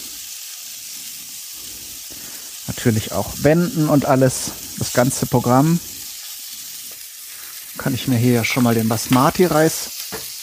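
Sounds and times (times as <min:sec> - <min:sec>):
duck legs sizzling in a hot pan: 0:00.0 - 0:10.4
speech: 0:02.8 - 0:05.9, 0:07.9 - 0:09.9.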